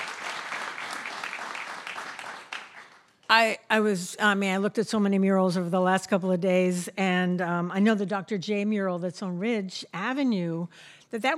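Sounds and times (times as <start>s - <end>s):
audience clapping: 0.0s - 3.3s
speech: 3.3s - 11.3s.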